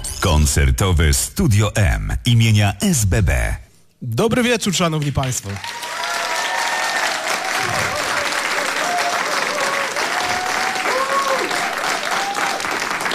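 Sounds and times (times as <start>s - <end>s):
speech: 0.2s - 5.9s
live studio audience applauding: 5.5s - 13.1s.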